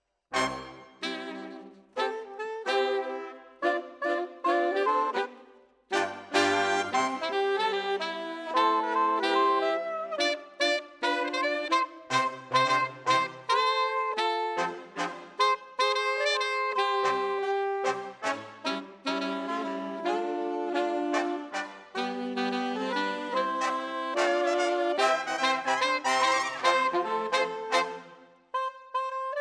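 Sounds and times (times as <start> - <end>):
saxophone: 0.3 - 29.4.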